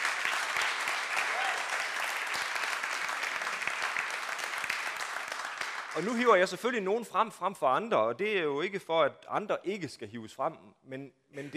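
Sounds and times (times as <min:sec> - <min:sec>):
audience applause: 0:00.0 - 0:06.4
speech: 0:06.0 - 0:11.5.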